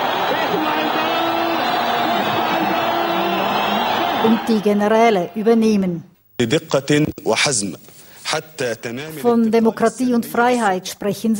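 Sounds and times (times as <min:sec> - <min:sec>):
crowd cheering: 0:00.0 - 0:05.3
speech: 0:04.2 - 0:11.3.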